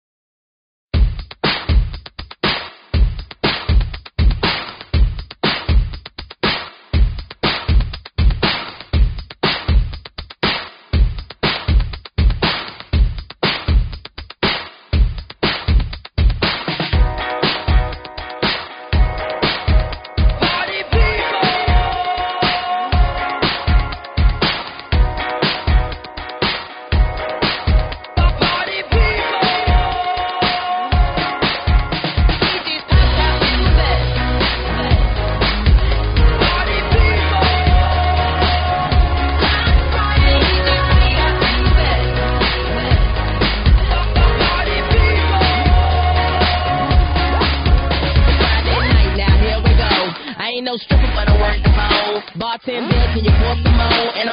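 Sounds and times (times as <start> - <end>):
funk music: 1.2 - 54.3.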